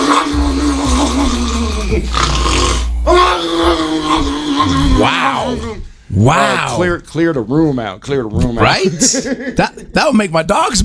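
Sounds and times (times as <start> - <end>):
person imitating sleep apnea snoring: 0.0 - 6.7
speech: 6.2 - 10.8
laughter: 8.7 - 10.0.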